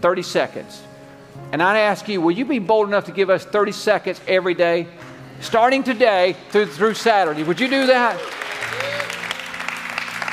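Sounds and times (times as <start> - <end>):
speech: 0.0 - 8.8
audience applause: 6.5 - 10.3.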